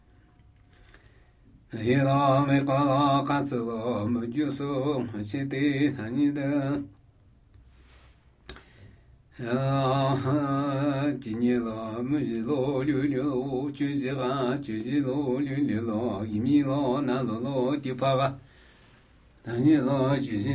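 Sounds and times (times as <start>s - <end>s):
Namuyi Tibetan ritual chanting: 1.7s - 7.0s, 9.3s - 18.5s, 19.1s - 20.5s.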